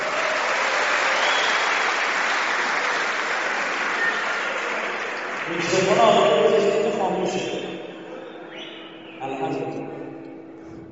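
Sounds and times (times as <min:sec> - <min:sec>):
audience clapping at a religious talk: 0:00.0 - 0:06.9
speech: 0:05.5 - 0:07.7.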